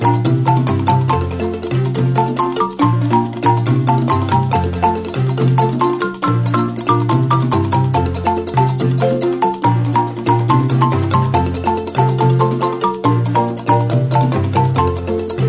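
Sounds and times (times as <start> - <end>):
balafon marimba: 0.0 - 15.4.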